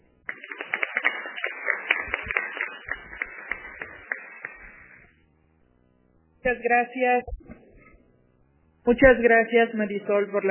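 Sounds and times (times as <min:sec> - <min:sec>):
audience applause: 0:00.0 - 0:05.1
speech: 0:06.5 - 0:07.4, 0:08.8 - 0:10.4.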